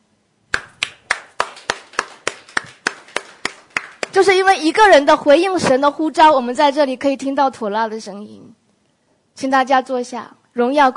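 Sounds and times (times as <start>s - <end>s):
audience applause: 0.6s - 4.2s
speech: 4.2s - 8.6s, 9.4s - 10.9s.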